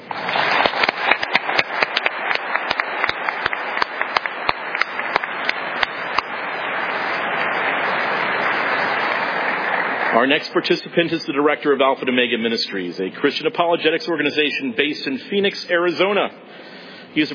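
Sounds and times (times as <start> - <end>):
audience clapping welcoming author Trent Horn: 0.0 - 10.2
speech: 10.2 - 16.6, 17.2 - 17.3.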